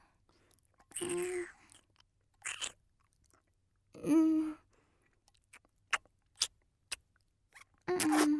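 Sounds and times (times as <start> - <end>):
steak being chewed with moist mouth clicks and smacks: 0.5 - 3.6, 5.1 - 8.3.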